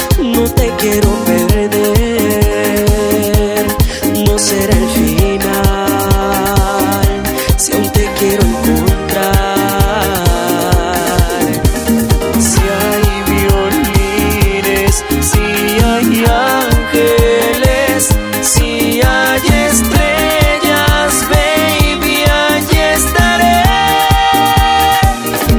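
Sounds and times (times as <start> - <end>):
tropical pop music: 0.0 - 25.5.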